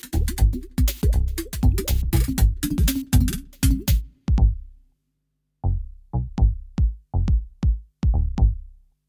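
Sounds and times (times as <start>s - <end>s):
underwater funk beat: 0.0s - 4.7s, 6.4s - 8.6s.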